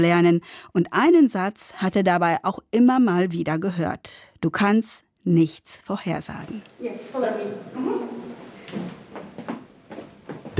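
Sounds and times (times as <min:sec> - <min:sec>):
speech: 0:00.0 - 0:08.0
wooden floorboards creaking underfoot: 0:08.1 - 0:10.5
soft footstep thuds: 0:08.4 - 0:10.5.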